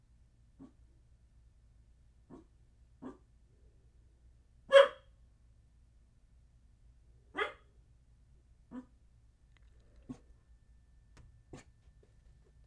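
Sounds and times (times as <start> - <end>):
small dog barking indoors in an apartment: 2.3 - 3.2, 4.7 - 5.1, 7.3 - 7.7, 8.7 - 8.9.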